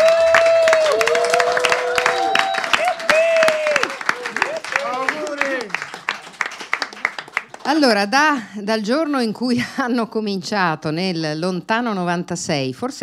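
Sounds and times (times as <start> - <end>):
audience applause: 0.0 - 8.1
speech: 7.7 - 13.0.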